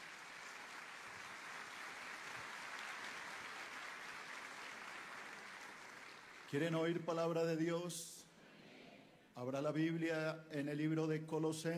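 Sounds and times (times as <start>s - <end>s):
crowd applauding in welcome: 0.0s - 6.6s
speech: 6.5s - 8.1s, 9.4s - 11.7s.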